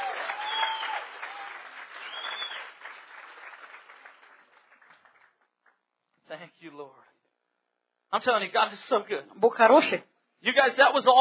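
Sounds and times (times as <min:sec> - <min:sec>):
audience applauding: 0:00.0 - 0:05.9
speech: 0:06.4 - 0:07.2, 0:08.1 - 0:11.1.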